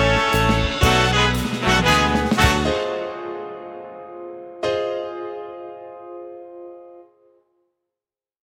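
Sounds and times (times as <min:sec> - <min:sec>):
big band action music: 0:00.0 - 0:03.8.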